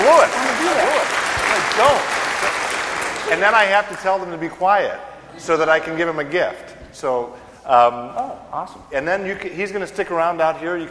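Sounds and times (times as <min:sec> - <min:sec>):
audience applauding loudly: 0:00.0 - 0:04.2
speech: 0:03.3 - 0:10.8.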